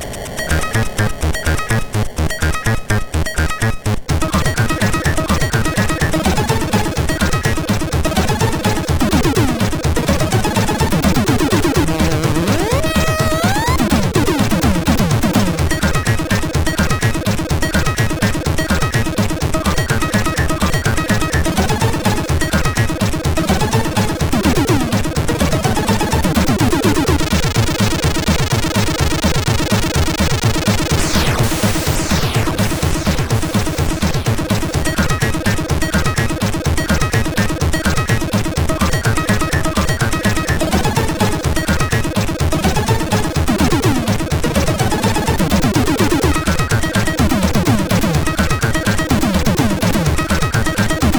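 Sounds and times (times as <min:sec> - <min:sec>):
heavy beat on a MOS6581R3 SID chip: 0:00.2 - 0:51.1.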